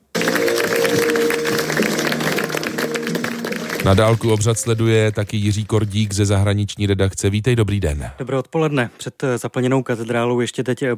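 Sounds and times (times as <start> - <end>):
crowd applause outside St Patrick's Cathedral: 0.0 - 6.3
speech: 3.8 - 10.9.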